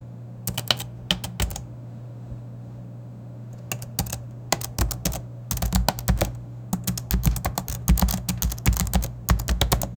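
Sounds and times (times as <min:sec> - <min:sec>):
pressing keys, typing: 0:00.5 - 0:01.7, 0:03.6 - 0:09.9.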